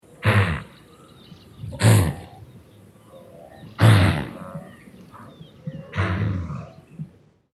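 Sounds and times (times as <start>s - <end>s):
wildebeest snorting: 0.1s - 1.0s, 1.6s - 2.6s, 3.2s - 7.2s.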